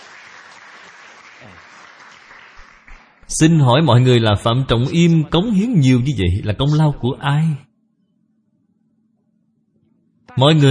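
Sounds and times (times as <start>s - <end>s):
audience applause: 0.0s - 3.3s
speech: 3.3s - 7.7s, 10.4s - 10.6s.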